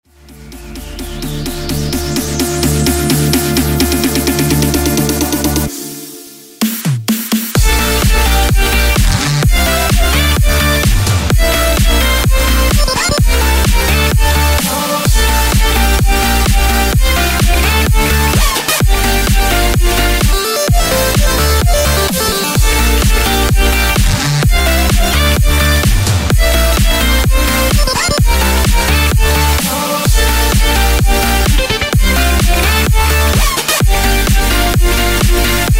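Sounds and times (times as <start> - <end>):
instrumental music: 0.1 - 35.7.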